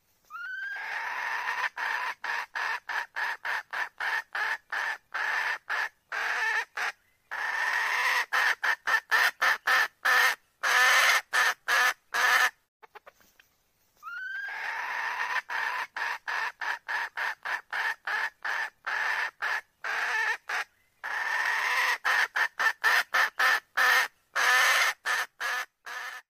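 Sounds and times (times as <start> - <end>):
red junglefowl calling: 0.3 - 13.1, 14.0 - 26.2.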